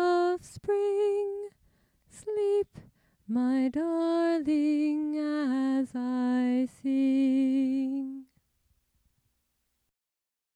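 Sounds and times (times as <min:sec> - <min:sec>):
lullaby: 0:00.0 - 0:08.3.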